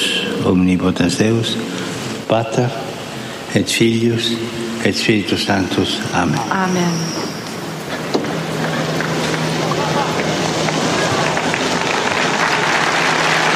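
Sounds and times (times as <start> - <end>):
speech: 0.4 - 2.8, 3.6 - 7.3
pilgrims applauding Pope Francis's blessing at the general audience: 8.3 - 13.5.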